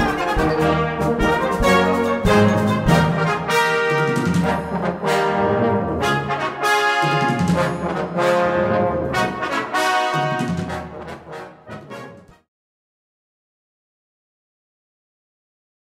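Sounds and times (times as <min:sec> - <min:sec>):
sparkling brass: 0:00.0 - 0:12.4.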